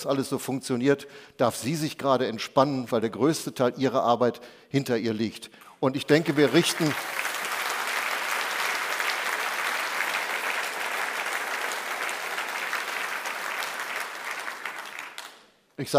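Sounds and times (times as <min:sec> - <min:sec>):
speech: 0:00.0 - 0:07.3, 0:15.8 - 0:15.9
applause: 0:06.1 - 0:15.5.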